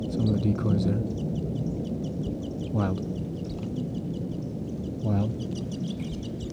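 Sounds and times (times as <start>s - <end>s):
wild birds calling: 0.2s - 6.5s
speech: 0.4s - 1.2s, 2.8s - 3.1s.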